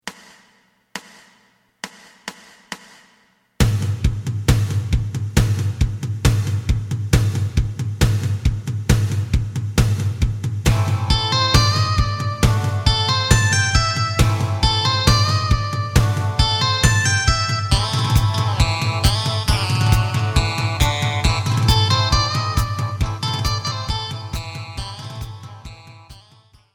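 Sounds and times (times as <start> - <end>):
bass: 3.6 - 26.2.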